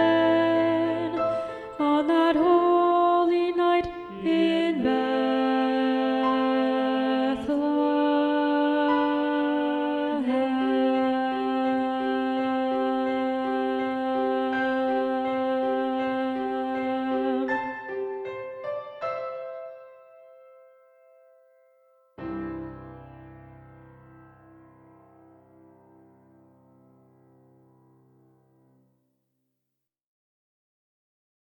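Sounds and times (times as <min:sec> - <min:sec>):
soprano singing: 0:00.0 - 0:21.0.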